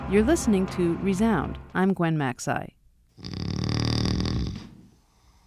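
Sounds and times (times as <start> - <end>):
speech: 0.1 - 2.8
man snoring in his sleep: 3.1 - 5.4.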